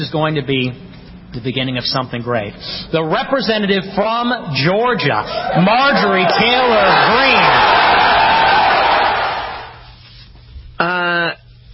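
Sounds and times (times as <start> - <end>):
speech: 0.0 - 7.8
crowd applauding: 5.6 - 9.8.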